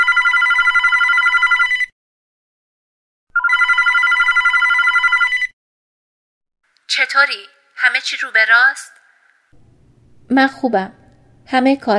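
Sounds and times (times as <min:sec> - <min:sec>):
telephone ringing: 0:00.0 - 0:01.9, 0:03.3 - 0:05.6
speech: 0:07.1 - 0:09.0, 0:10.3 - 0:11.9.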